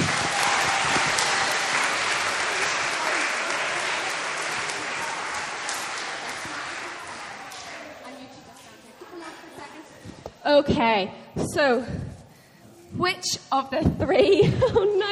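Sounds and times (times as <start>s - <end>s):
audience applause: 0.0s - 8.0s
speech: 10.5s - 12.0s, 13.0s - 15.1s.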